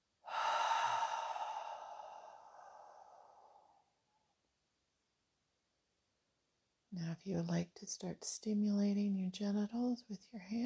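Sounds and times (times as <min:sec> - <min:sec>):
slow breathing in and out: 0:00.2 - 0:03.9
speech: 0:07.0 - 0:10.6.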